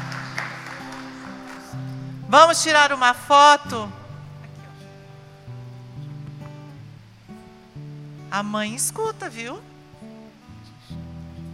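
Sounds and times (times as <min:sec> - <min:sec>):
audience applause: 0:00.0 - 0:02.2
speech: 0:01.7 - 0:04.0, 0:08.4 - 0:09.7.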